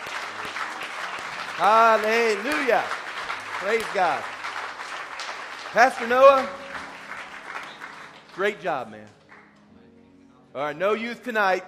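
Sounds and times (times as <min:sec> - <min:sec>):
audience hand clapping: 0:00.0 - 0:09.7
speech: 0:01.6 - 0:03.0, 0:03.6 - 0:04.3, 0:05.7 - 0:06.6, 0:08.4 - 0:09.2, 0:10.6 - 0:11.6.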